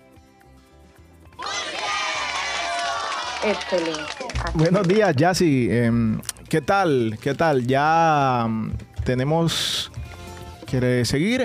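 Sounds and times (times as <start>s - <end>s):
crowd cheering: 1.4s - 5.2s
applause: 1.4s - 5.3s
speech: 3.4s - 10.0s, 10.7s - 11.4s.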